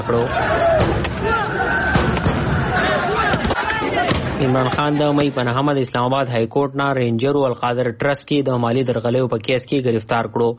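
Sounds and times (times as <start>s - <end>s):
speech: 0.0s - 1.7s, 4.4s - 10.5s
PTI protesters shouting in Mardan protesting Imran Khan's arrest: 0.0s - 5.5s.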